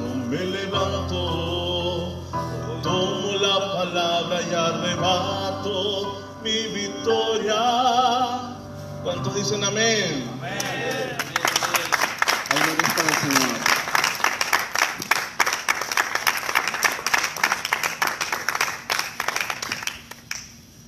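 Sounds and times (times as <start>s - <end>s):
speech: 0.3s - 11.4s
crowd applauding: 10.5s - 20.6s.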